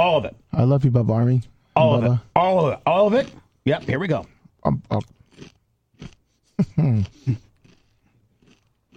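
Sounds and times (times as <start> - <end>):
speech: 0.1 - 7.5
chewing a large mouthful of several pieces of food: 1.8 - 8.9
throat sounds of the eater: 3.2 - 5.2, 6.6 - 7.8.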